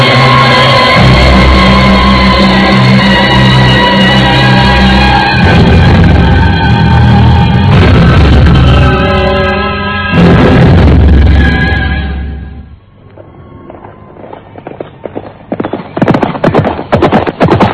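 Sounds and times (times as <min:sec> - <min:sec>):
loud tonal burst: 0:00.0 - 0:14.3
many horses galloping: 0:13.2 - 0:17.7.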